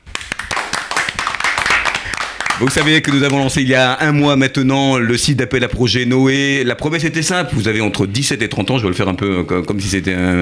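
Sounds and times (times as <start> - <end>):
clapping: 0.0 - 3.6
speech: 2.6 - 10.4.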